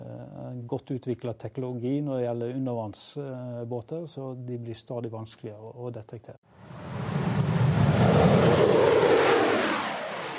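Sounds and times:
speech: 0.7 - 6.4
Russian MiG-35 fighter jet engine: 6.6 - 10.3.

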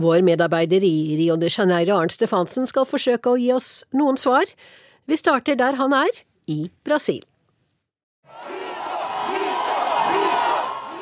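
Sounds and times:
speech: 0.0 - 7.3
crowd of Jair Bolsonaro supporters chanting: 8.3 - 11.0.

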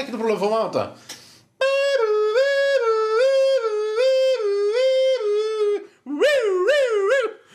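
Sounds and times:
speech: 0.0 - 1.1
person imitating police siren with voice: 1.6 - 7.5.

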